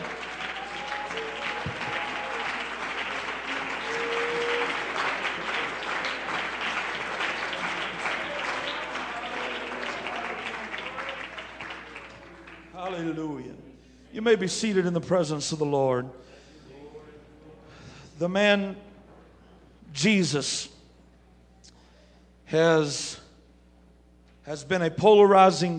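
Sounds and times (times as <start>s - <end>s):
faint voices and cheers: 0.0s - 12.8s
audience clapping: 0.0s - 13.2s
speech: 14.2s - 16.3s, 18.2s - 18.9s, 19.9s - 20.7s, 22.5s - 23.2s, 24.5s - 25.7s.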